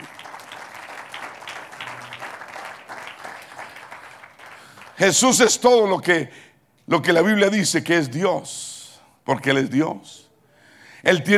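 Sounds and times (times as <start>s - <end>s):
audience applause: 0.0s - 5.1s
speech: 5.0s - 8.7s, 9.3s - 10.3s, 11.0s - 11.3s.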